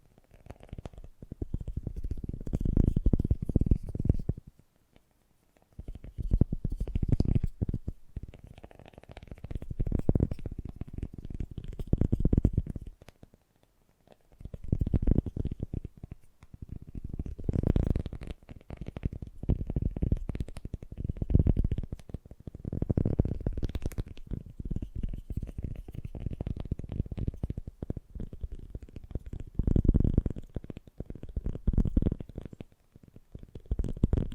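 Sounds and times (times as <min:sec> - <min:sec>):
fast gentle tapping: 0:00.0 - 0:34.3.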